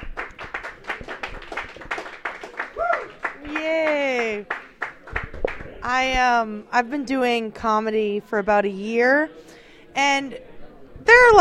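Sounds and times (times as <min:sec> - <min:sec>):
audience applauding comedians at a stand-up comedy show: 0:00.0 - 0:05.8
speech: 0:05.9 - 0:10.5, 0:11.1 - 0:11.3.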